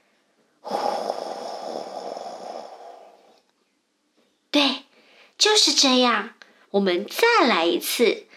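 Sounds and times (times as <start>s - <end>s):
deep slow breath in a children's relaxation meditation: 0.6s - 3.4s
speech: 5.5s - 8.3s.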